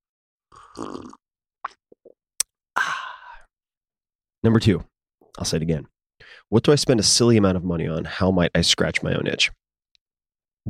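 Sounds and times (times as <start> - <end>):
slurping hot coffee: 0.5 - 1.8
speech: 0.8 - 1.2, 4.4 - 9.6
breathy exhale of satisfaction: 2.8 - 3.5.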